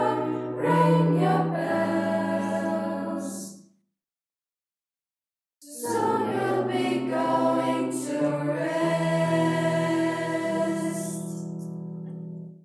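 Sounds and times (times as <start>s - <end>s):
Christmas lullaby: 0.0s - 3.5s, 5.6s - 11.8s.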